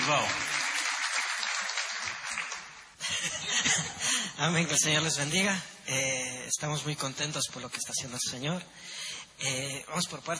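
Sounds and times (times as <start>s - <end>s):
speech: 0.0s - 0.5s, 3.2s - 10.3s
audience applause: 0.0s - 3.0s.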